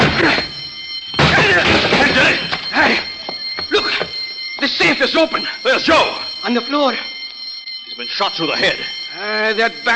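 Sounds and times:
locked door being broken down: 0.0s - 2.7s
speech: 3.8s - 7.1s, 8.0s - 9.9s.

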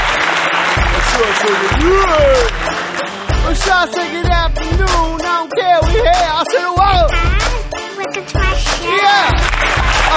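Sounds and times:
crowd clapping: 0.0s - 4.2s, 7.4s - 10.1s
speech: 1.2s - 7.3s, 8.1s - 10.1s.

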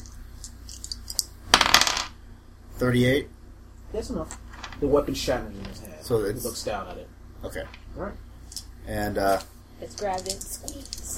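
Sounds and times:
dice tumbling and clattering across a hard surface: 0.4s - 2.1s, 9.3s - 11.1s
speech: 2.8s - 8.2s, 8.8s - 11.1s.

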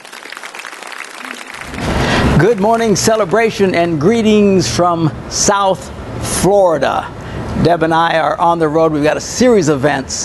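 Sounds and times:
audience applause: 0.0s - 4.0s
speech: 2.4s - 10.2s.

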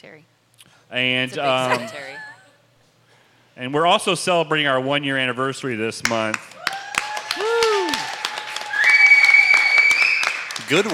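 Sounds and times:
speech: 0.0s - 2.3s, 3.6s - 6.6s, 10.7s - 10.9s
audience clapping: 6.0s - 10.9s.

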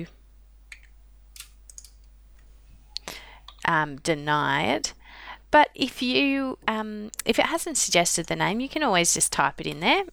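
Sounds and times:
speech: 0.0s - 0.2s, 3.7s - 10.1s
computer mouse clicks: 0.7s - 2.1s.

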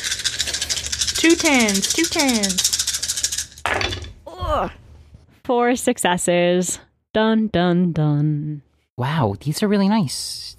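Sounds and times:
handful of dice rattling: 0.0s - 4.1s
speech: 1.2s - 2.7s, 5.5s - 10.5s.

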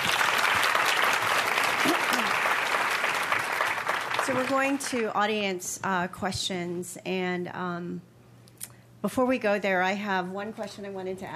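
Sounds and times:
audience applause: 0.0s - 5.1s
speech: 4.3s - 8.1s, 9.0s - 11.3s.

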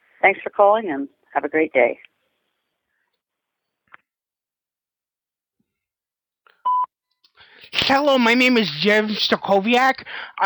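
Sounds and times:
speech: 0.2s - 2.1s, 7.7s - 10.4s
voicemail beep tone: 6.6s - 6.9s.

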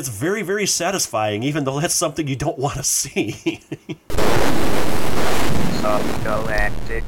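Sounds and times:
speech: 0.0s - 4.6s, 5.8s - 7.0s
arcade game ship explosion: 4.1s - 7.0s.

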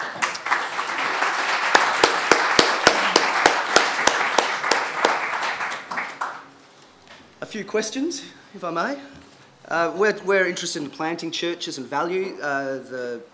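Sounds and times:
audience applause welcoming a speaker to a church talk: 0.0s - 6.5s
speech: 7.5s - 13.3s.

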